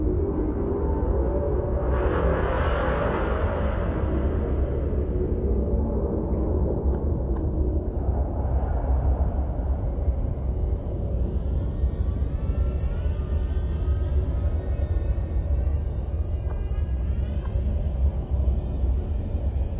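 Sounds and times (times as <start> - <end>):
dark eerie menacing horror drone soundscape: 0.0 - 19.7.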